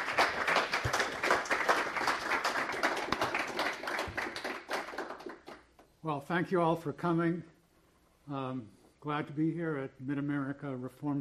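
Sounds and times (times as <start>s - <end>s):
audience applause: 0.0s - 5.6s
speech: 6.1s - 7.6s, 8.3s - 11.1s.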